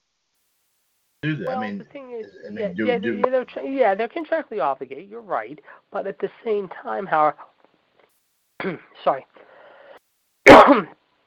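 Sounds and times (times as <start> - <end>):
throat clearing: 1.2 - 1.6, 8.6 - 8.9
speech: 1.2 - 7.5, 8.6 - 9.4, 10.6 - 11.0.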